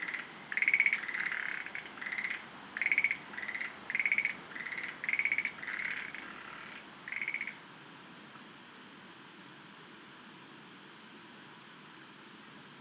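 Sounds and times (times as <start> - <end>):
Schlegel's green tree frog pulsed chuckles: 0.0 - 7.6
soft background hiss: 0.0 - 12.7.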